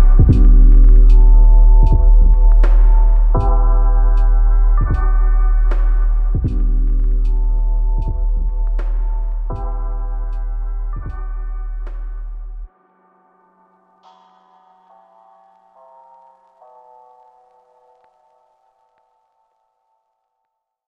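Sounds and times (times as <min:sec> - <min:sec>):
rap music: 0:00.0 - 0:12.7.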